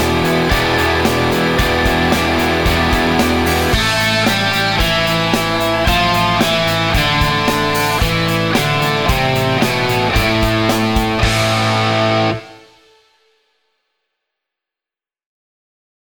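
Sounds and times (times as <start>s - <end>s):
quiet rock guitar: 0.0s - 13.0s.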